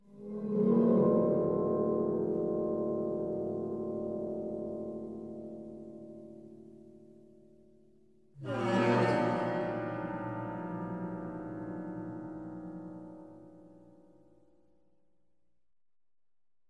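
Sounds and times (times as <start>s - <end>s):
sad guitar music: 0.1s - 7.1s, 8.4s - 13.8s.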